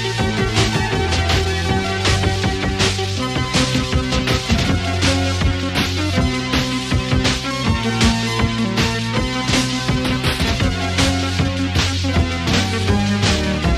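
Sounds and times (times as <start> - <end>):
Juno60 synthesizer: 0.0 - 13.7.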